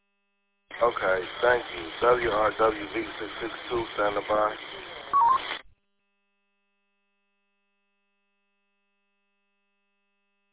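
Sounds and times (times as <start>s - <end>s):
band-limited radio hiss: 0.7s - 5.7s
speech: 0.8s - 5.2s
electronic radio roger beep: 4.9s - 5.7s.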